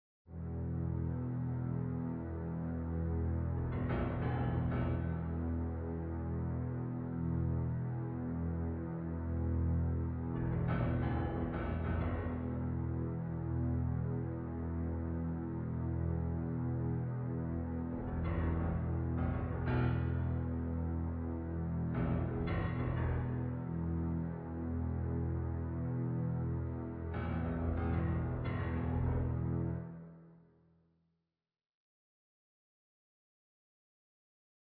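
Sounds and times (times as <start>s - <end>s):
game background music: 0.3s - 30.6s.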